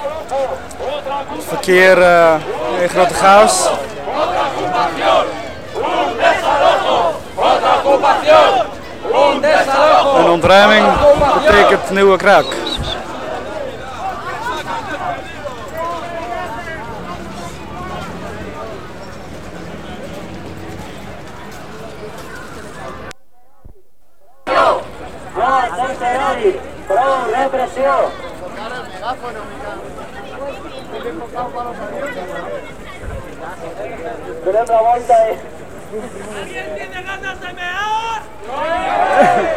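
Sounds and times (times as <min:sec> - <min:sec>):
crowd shouting in the street: 0:00.0 - 0:21.0, 0:24.3 - 0:35.1, 0:36.7 - 0:39.5
speech: 0:00.3 - 0:03.9, 0:07.9 - 0:12.6.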